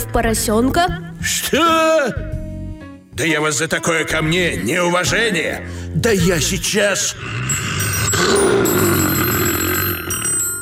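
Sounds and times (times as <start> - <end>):
speech: 0.0 - 2.4, 3.2 - 8.9
telephone ringing: 7.5 - 10.6.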